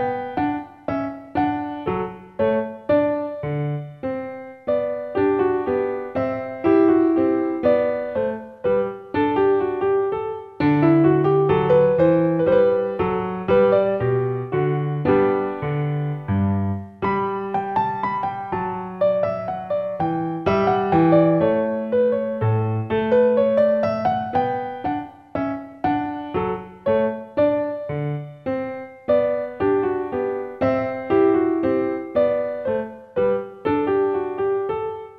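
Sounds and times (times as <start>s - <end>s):
minuet on piano: 0.0s - 35.1s.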